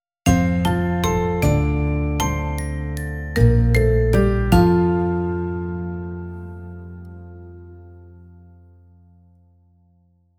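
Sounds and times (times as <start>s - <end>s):
happy ident jingle: 0.3s - 8.5s.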